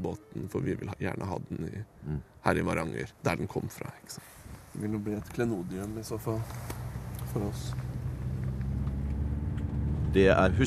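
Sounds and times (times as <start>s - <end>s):
speech: 0.0s - 7.8s, 10.1s - 10.6s
car driving along the outer coastal road: 4.6s - 10.6s.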